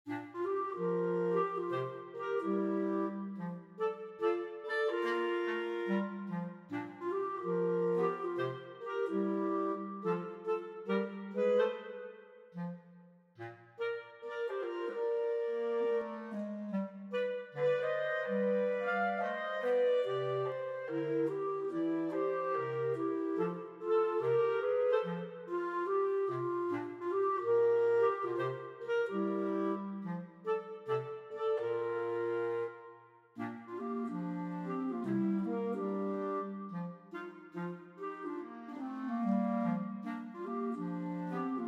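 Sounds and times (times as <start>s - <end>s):
clarinet arrangement: 0.0s - 41.6s.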